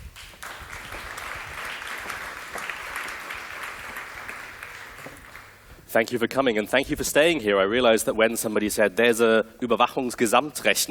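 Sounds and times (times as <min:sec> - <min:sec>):
audience applause: 0:00.2 - 0:05.6
speech: 0:05.9 - 0:10.8.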